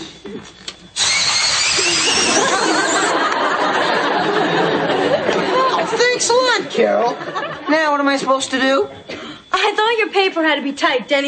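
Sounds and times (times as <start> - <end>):
electric pencil sharpener grinding: 1.0 - 3.2
laughter: 1.8 - 8.0
speech: 6.8 - 11.2.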